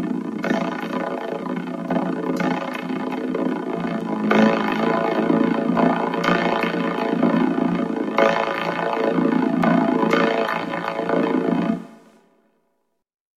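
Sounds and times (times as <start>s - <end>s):
vocoder voice: 0.0s - 11.7s
drums: 0.0s - 12.1s.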